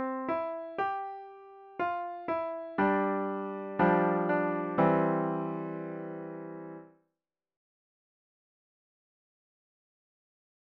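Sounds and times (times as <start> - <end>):
beginner piano piece: 0.0 - 6.9.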